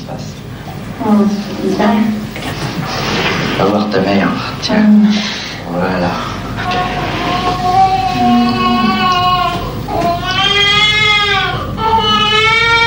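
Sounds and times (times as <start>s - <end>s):
speech: 1.0s - 2.5s, 3.6s - 8.4s
newborn baby crying after birth: 6.6s - 12.8s.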